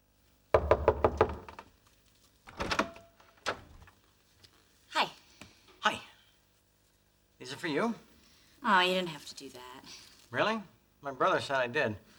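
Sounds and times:
knocking on an apartment door: 0.5 - 1.6
speech: 7.6 - 12.1.

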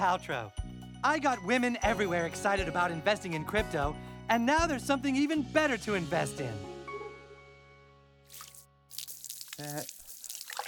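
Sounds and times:
speech: 0.0 - 6.7, 9.6 - 10.0
stream of urine splashing into an ornate teacup: 8.3 - 10.6.

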